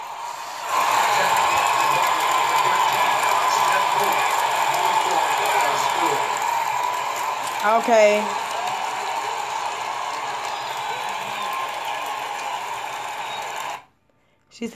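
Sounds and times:
crowd cheering sound effect: 0.0 - 13.9
speech: 7.6 - 8.4, 14.6 - 14.7.

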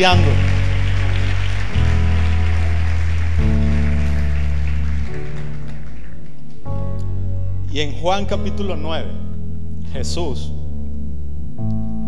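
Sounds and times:
speech: 0.0 - 0.4, 7.8 - 9.3, 9.9 - 10.6
audience clapping loudly: 0.0 - 6.8
sustained low keyboard chords: 0.0 - 12.0.

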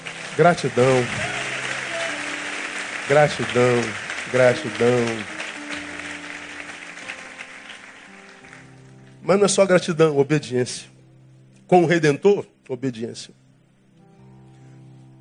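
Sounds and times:
audience applauding: 0.0 - 9.2
speech: 0.4 - 1.3, 3.1 - 5.4, 9.3 - 10.9, 11.7 - 13.4.

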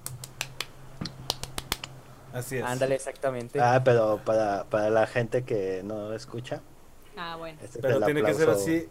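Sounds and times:
rhythmic hand clapping: 0.0 - 2.0
faint steady hum: 0.0 - 8.8
speech: 2.3 - 8.8.

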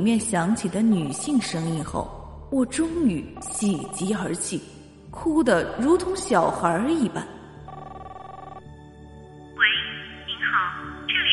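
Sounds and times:
speech: 0.0 - 7.4
telephone line ringing on a call: 0.9 - 1.6, 3.4 - 4.5, 7.6 - 8.7.

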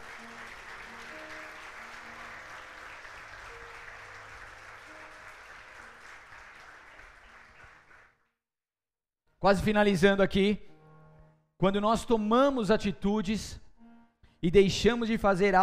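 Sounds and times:
audience applauding: 0.0 - 8.2
speech: 9.4 - 10.7, 11.6 - 13.6, 14.4 - 15.6.

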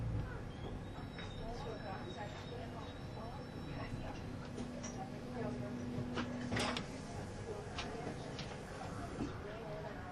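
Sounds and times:
Swiss tilting ICN train rumbling on the Gotthard line: 0.0 - 9.9
people talking: 0.0 - 10.1.

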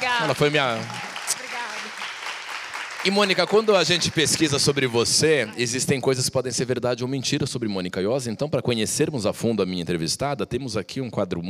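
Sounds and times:
audience applause: 0.0 - 5.8
speech: 0.2 - 1.0, 3.0 - 11.4.

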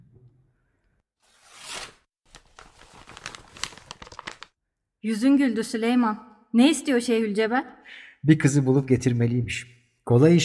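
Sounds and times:
paper envelope being torn open: 1.2 - 4.5
speech: 5.0 - 10.4.

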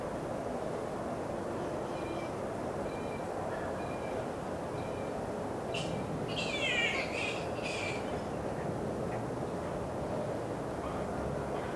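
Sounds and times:
traffic rumble: 0.0 - 11.7
flying foxes screeching: 5.7 - 8.1.

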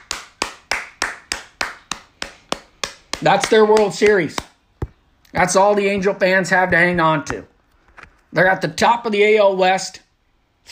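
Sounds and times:
single pair of hands clapping slowly: 0.0 - 4.6
speech: 3.2 - 4.5, 5.3 - 7.5, 8.3 - 10.0.

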